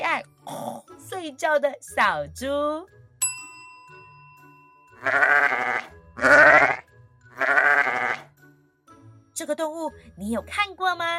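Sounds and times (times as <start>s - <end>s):
speech: 1.2s - 3.0s, 5.0s - 6.8s, 9.4s - 11.1s
bright chime: 3.2s - 5.0s
sheep bleating: 5.0s - 8.3s.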